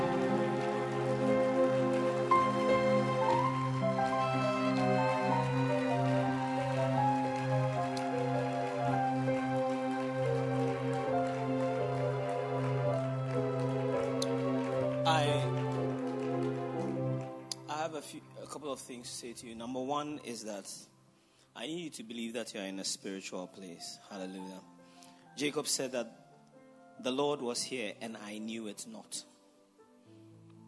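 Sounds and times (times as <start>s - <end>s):
audience hand clapping: 0.0s - 17.6s
speech: 18.7s - 20.9s, 21.6s - 24.7s, 25.4s - 26.2s, 27.0s - 29.3s.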